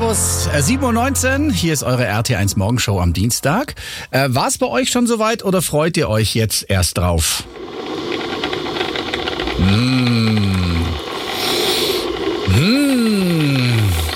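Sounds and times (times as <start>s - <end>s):
speech: 0.1s - 8.1s, 9.6s - 10.6s
coffee machine running: 7.4s - 14.1s.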